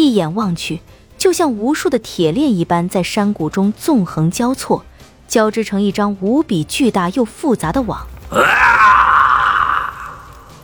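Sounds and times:
speech: 0.2 - 9.0
man roaring like a beast: 8.3 - 10.5.

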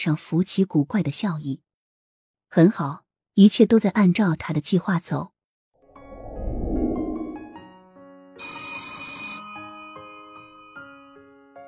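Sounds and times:
speech: 0.0 - 1.7, 2.5 - 5.3
landline telephone ringing with an electronic melodic tone in a study: 8.4 - 10.8.

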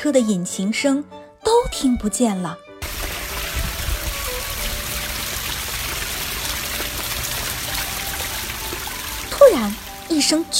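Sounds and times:
speech: 0.0 - 2.7, 9.5 - 10.5
heavy pouring summer rain: 2.8 - 10.5.

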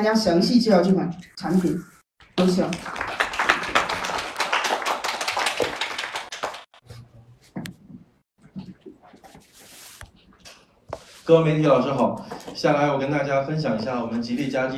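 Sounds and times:
speech: 0.0 - 3.1, 11.3 - 14.7
audience applause: 2.4 - 6.8.

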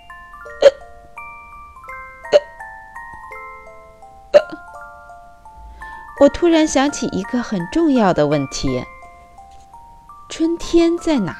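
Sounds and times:
hiccups: 4.3 - 4.6
speech: 6.2 - 8.9, 10.4 - 11.3.

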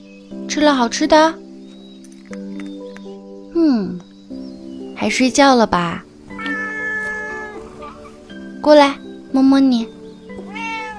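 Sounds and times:
speech: 0.5 - 1.4, 5.0 - 6.1, 8.6 - 10.0
cat meowing: 6.3 - 8.2, 10.3 - 10.9.

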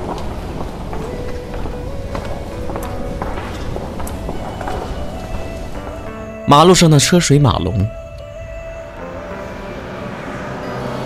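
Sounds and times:
hurried footsteps in an office: 0.0 - 6.5
speech: 6.5 - 8.0.

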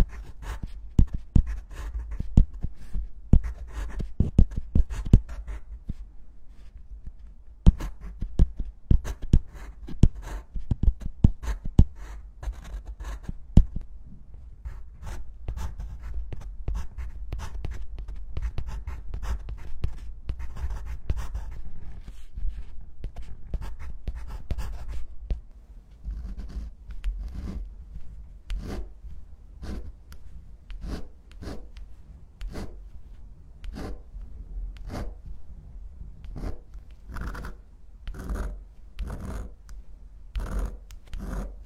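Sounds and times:
pencil and pen writing on paper: 0.0 - 6.0, 7.7 - 13.4, 14.7 - 25.1, 26.0 - 29.0, 29.6 - 30.0, 30.7 - 32.8, 33.6 - 34.1, 34.8 - 35.3, 36.2 - 39.6, 40.3 - 41.6.

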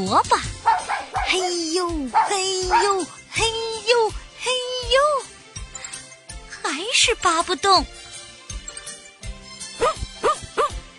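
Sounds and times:
speech: 0.0 - 0.5, 1.3 - 5.2, 6.7 - 8.0
dog barking: 0.6 - 3.1, 9.8 - 10.8.

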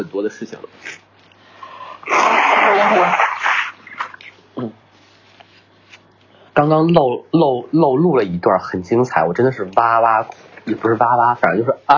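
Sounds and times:
speech: 0.0 - 1.1, 2.0 - 3.4, 6.6 - 11.9
person blowing nose: 2.1 - 3.8.

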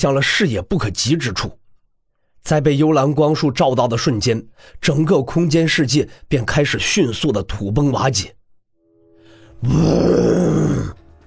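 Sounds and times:
speech: 0.0 - 1.6, 2.4 - 8.4, 9.6 - 11.0
deep roar from the depths: 9.6 - 11.0.

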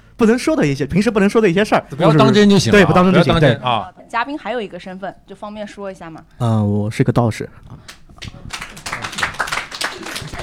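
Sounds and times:
speech: 0.2 - 8.6
scattered clapping welcoming a Taoist priest on a Chinese talk show: 7.9 - 10.4.

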